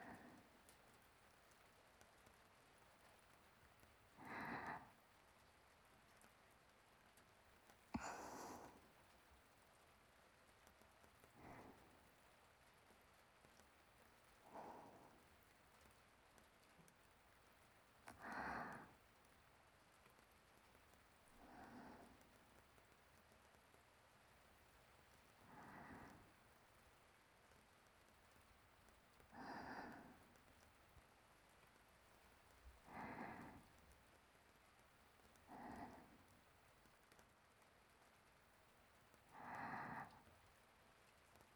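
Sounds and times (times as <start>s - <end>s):
sleeping breathing: 0.0s - 0.7s, 4.2s - 5.0s, 7.9s - 9.1s, 11.3s - 12.1s, 14.4s - 15.8s, 18.0s - 19.0s, 21.4s - 22.6s, 25.4s - 26.6s, 29.2s - 30.6s, 32.6s - 33.8s, 35.3s - 36.3s, 39.2s - 40.3s.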